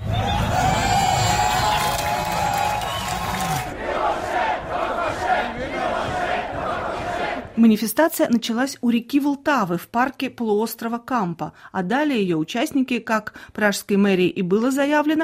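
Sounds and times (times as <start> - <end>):
large crowd of protesters shouting and chanting: 0.0 - 7.6
speech: 7.6 - 15.2.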